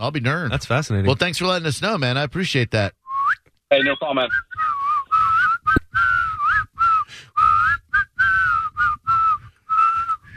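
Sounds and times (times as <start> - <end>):
speech: 0.0 - 3.0, 3.7 - 4.5
person whistling through teeth: 3.1 - 10.3.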